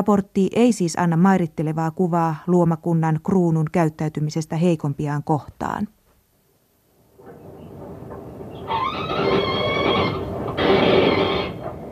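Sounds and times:
speech: 0.0s - 6.0s
constant low rumbling noise: 6.9s - 11.9s
mink screaming: 8.6s - 11.6s.

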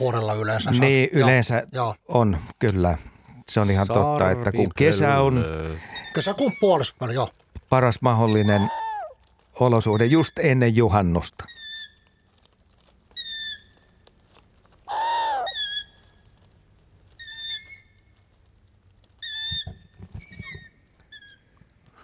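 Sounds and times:
speech: 0.0s - 8.8s, 9.6s - 11.6s
long-eared owl high squeaky call: 5.8s - 7.2s, 8.2s - 9.2s, 9.8s - 10.4s, 11.5s - 12.3s, 13.1s - 14.0s, 14.8s - 16.2s, 17.2s - 18.1s, 19.2s - 21.6s.

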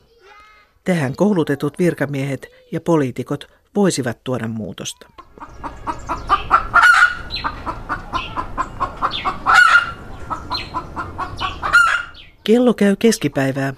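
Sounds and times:
speech: 0.8s - 6.1s, 12.5s - 13.7s
chicken clucking: 5.1s - 12.4s, 13.2s - 13.7s.

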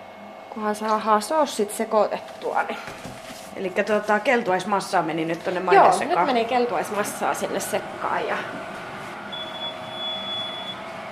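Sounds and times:
speech: 0.6s - 8.7s
ice cream machine beeping: 9.2s - 11.0s.

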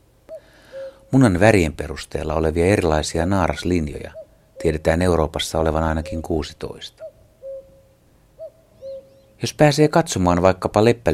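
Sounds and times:
common cuckoo calling: 0.2s - 1.4s, 3.4s - 9.4s
speech: 1.1s - 7.0s, 9.4s - 11.1s.

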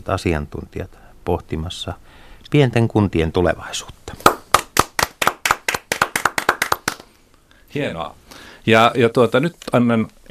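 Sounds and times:
speech: 0.0s - 4.3s, 7.7s - 10.2s
audience clapping: 4.2s - 7.1s.

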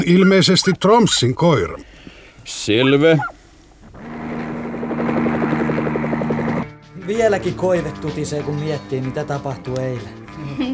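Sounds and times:
speech: 0.0s - 3.4s, 7.1s - 10.7s
helicopter engine and rotor: 4.0s - 6.8s
laughter: 10.4s - 10.7s.

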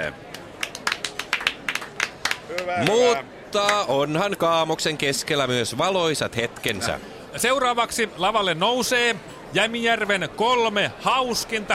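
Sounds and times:
scattered clapping after a comedy act: 0.2s - 3.0s, 3.6s - 3.9s
speech: 2.5s - 11.7s.

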